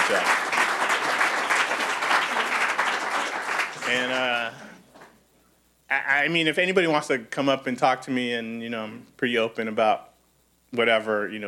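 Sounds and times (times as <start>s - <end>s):
audience applause: 0.0s - 4.8s
speech: 0.1s - 0.4s, 3.9s - 4.7s, 5.9s - 10.1s, 10.7s - 11.4s.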